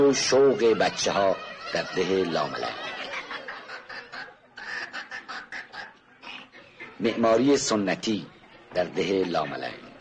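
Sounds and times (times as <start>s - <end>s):
speech: 0.0s - 2.8s, 7.0s - 9.8s
laughter: 0.0s - 10.0s
hens clucking: 1.3s - 7.1s.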